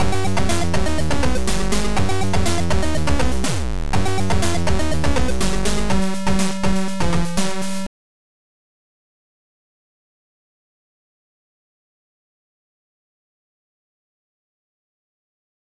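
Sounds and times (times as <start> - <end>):
short intro music: 0.0 - 7.9.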